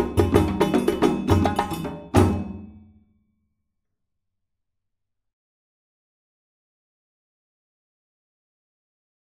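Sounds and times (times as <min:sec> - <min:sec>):
djembe drumming: 0:00.0 - 0:02.9.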